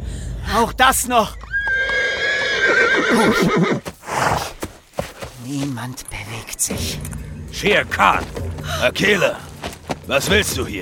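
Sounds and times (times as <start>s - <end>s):
speech: 0.5s - 1.5s, 3.0s - 3.9s, 5.4s - 9.5s, 10.1s - 10.8s
horse whinnying: 1.4s - 4.6s
hooves and carriage knocking and scraping: 1.4s - 10.8s.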